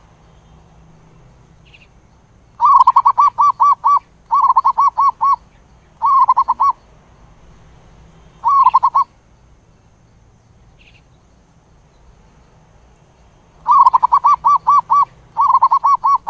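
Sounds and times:
zebra dove cooing: 2.6s - 5.4s, 6.0s - 6.8s, 8.4s - 9.1s, 13.6s - 16.2s.

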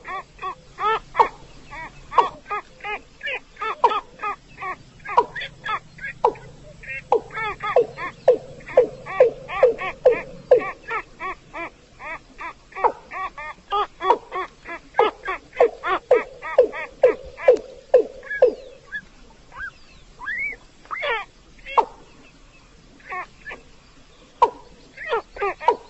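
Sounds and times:
Chinese edible frog giving pulsed notes and croaking bursts: 0.0s - 22.1s, 24.4s - 25.8s.

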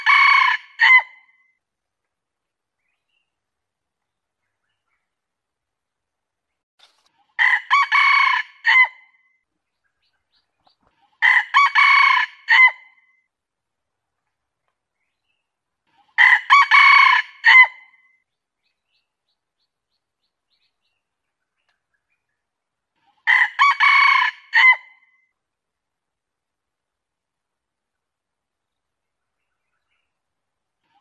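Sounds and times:
junglefowl crowing: 0.0s - 1.2s, 7.4s - 9.0s, 11.2s - 12.9s, 16.2s - 17.8s, 23.2s - 25.0s.

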